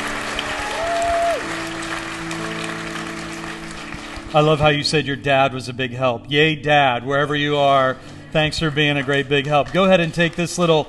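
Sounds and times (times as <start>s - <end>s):
audience applause: 0.0s - 4.8s, 8.4s - 10.8s
speech: 4.3s - 10.8s.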